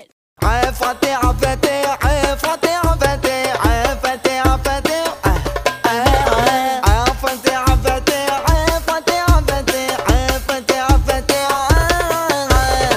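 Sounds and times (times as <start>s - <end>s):
Arabic remix music: 0.4s - 12.9s.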